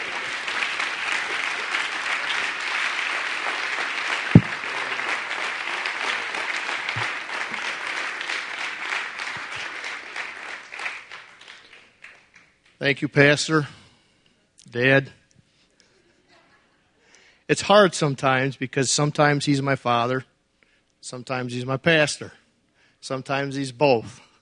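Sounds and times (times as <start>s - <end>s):
audience clapping hands: 0.0s - 12.8s
sharp thump: 4.4s - 4.6s
speech: 12.8s - 13.8s, 14.8s - 15.2s, 17.5s - 20.3s, 21.0s - 22.4s, 23.0s - 24.2s.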